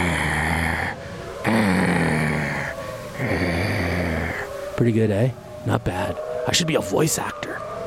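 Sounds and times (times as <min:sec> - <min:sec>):
man's voice imitating a wolf growl: 0:00.0 - 0:04.5
speech: 0:04.8 - 0:07.7.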